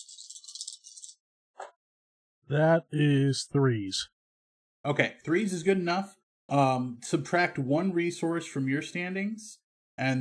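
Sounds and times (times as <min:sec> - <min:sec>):
dice being rolled: 0:00.0 - 0:01.2
speech: 0:02.5 - 0:04.2, 0:04.8 - 0:10.1.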